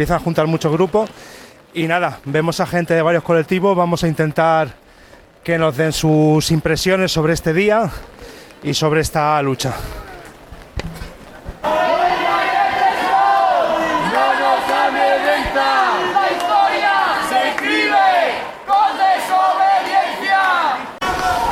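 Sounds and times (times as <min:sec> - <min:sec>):
speech: 0:00.0 - 0:04.8, 0:05.4 - 0:10.1
protest march crowd shouting: 0:09.5 - 0:21.4.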